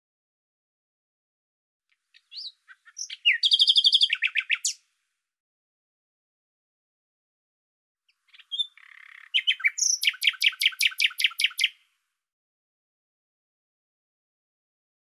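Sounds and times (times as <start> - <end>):
bird song: 1.9 - 5.0, 8.0 - 12.0.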